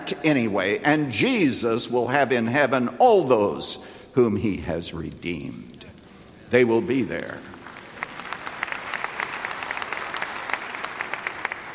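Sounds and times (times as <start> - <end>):
speech: 0.1 - 5.8, 6.5 - 7.5
audience applause: 7.6 - 11.7.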